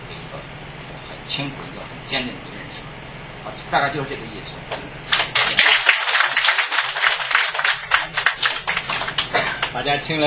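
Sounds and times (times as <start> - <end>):
speech: 1.3 - 2.6, 3.4 - 5.6, 9.4 - 10.2
audience applause: 5.1 - 9.8.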